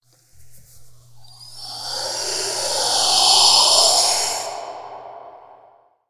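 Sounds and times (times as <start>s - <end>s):
hissing whoosh: 1.3s - 5.9s.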